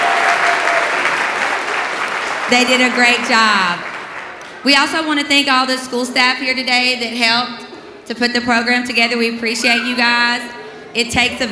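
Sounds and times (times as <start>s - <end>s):
crowd applause: 0.0s - 4.6s
speech: 2.5s - 3.9s, 4.6s - 11.5s.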